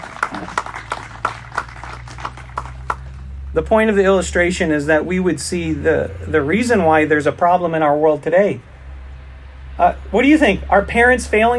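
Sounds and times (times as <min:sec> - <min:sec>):
audience applause: 0:00.0 - 0:03.2
speech: 0:03.6 - 0:08.7, 0:09.8 - 0:11.5.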